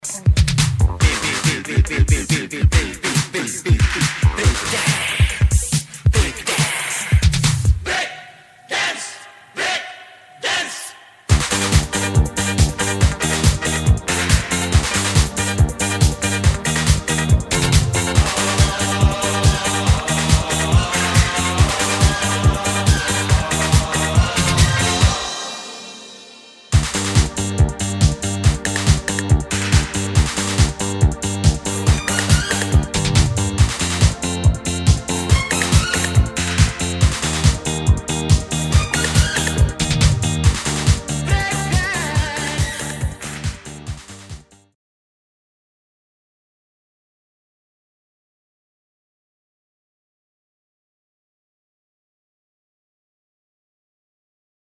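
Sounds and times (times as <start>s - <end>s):
rock and roll music: 0.0s - 7.9s, 11.3s - 44.6s.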